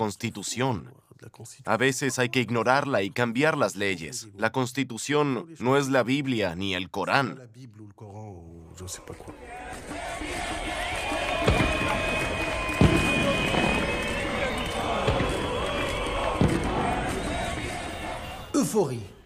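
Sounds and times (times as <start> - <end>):
speech: 0.0 - 10.6, 18.6 - 19.2
street celebration cheering: 9.4 - 18.6
car horns: 9.7 - 19.2
applause: 9.8 - 18.4.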